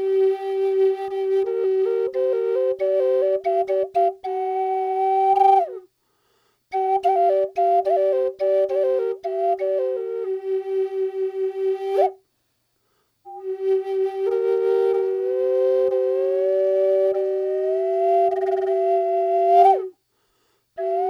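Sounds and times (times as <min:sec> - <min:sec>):
G minor drone on a rosewood flute: 0:00.0 - 0:05.8, 0:06.7 - 0:12.2, 0:13.3 - 0:19.9, 0:20.8 - 0:21.0.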